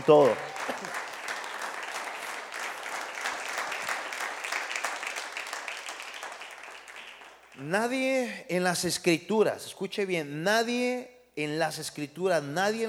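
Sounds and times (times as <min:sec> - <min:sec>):
speech: 0:00.0 - 0:00.5, 0:07.7 - 0:12.8
audience applause: 0:00.0 - 0:07.6.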